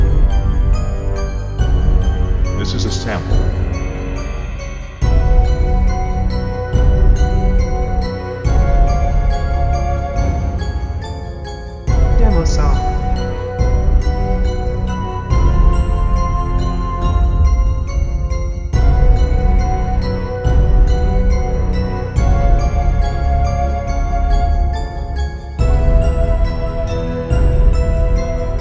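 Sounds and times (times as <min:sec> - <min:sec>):
flute: 0:00.0 - 0:28.5
mysterious dungeon music loop: 0:00.0 - 0:28.5.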